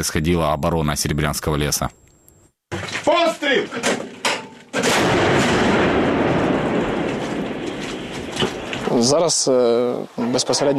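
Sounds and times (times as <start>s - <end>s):
speech: 0.0s - 2.1s, 2.7s - 4.1s, 8.9s - 10.7s
anti-aircraft gun firing at ground targets: 4.8s - 8.9s.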